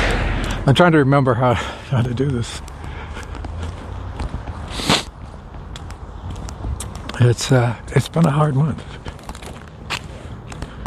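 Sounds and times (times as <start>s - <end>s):
speech: 0.7s - 2.7s, 7.2s - 9.0s
footsteps walking on an icy street: 1.9s - 10.8s
scrape: 4.7s - 5.1s.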